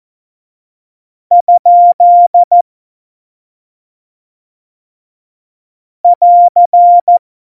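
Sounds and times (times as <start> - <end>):
morse code CW: 1.4 - 2.5, 6.1 - 7.2.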